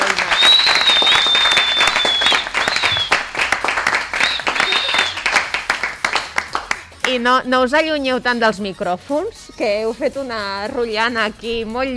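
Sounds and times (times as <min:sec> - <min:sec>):
class applauding: 0:00.0 - 0:06.9
speech: 0:07.2 - 0:11.9.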